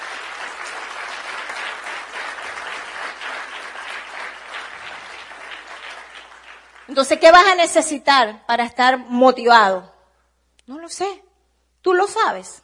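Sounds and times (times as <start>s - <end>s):
crowd clapping: 0.0s - 7.6s
speech: 6.9s - 9.9s, 10.9s - 11.2s, 11.8s - 12.6s.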